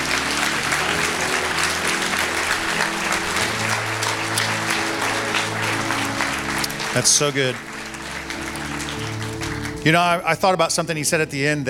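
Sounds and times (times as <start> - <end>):
audience applause: 0.0 - 10.8
speech: 7.0 - 7.7, 9.8 - 11.6.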